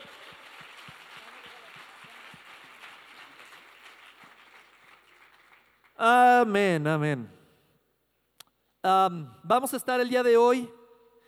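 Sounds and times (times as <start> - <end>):
audience applause: 0.0 - 6.0
speech: 6.0 - 7.4, 8.8 - 10.8.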